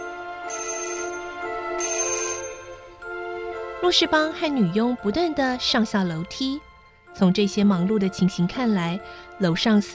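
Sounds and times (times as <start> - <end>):
bedroom call bell ringing: 0.0 - 3.0
speech: 3.8 - 9.9.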